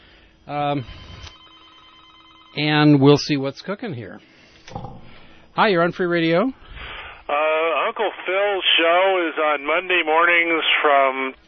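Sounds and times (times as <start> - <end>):
speech: 0.5 - 1.1, 2.6 - 11.4
telephone ringing on a radio station call-in line: 0.9 - 3.1.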